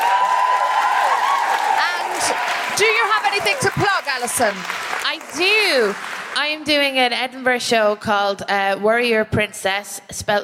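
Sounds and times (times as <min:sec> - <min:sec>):
audience applause: 0:00.0 - 0:06.7
speech: 0:03.5 - 0:10.4.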